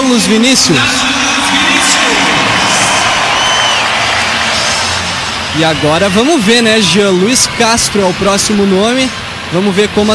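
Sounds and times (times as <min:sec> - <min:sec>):
speech: 0:00.2 - 0:01.2, 0:05.6 - 0:10.1
large stadium crowd applauding a player: 0:00.7 - 0:09.0
crowd shouts and whoops: 0:00.8 - 0:07.9.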